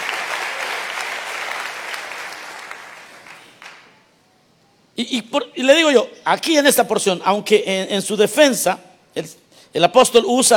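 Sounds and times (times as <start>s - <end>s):
audience clapping: 0.0s - 4.0s
speech: 5.0s - 10.5s.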